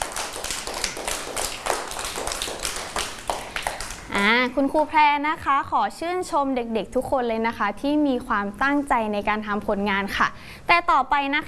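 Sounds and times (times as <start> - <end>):
children clapping: 0.0 - 4.3
speech: 4.2 - 11.4.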